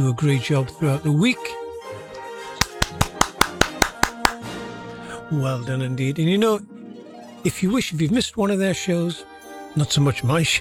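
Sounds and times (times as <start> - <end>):
speech: 0.0 - 1.6, 5.3 - 6.8, 7.4 - 10.5
hand clapping in the studio: 2.6 - 4.5.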